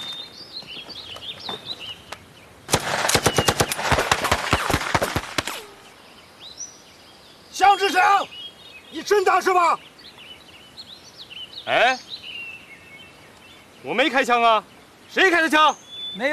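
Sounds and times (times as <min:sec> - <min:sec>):
faint bird chirps: 0:00.0 - 0:02.6, 0:05.5 - 0:16.3
machine gun firing bursts: 0:02.7 - 0:05.7.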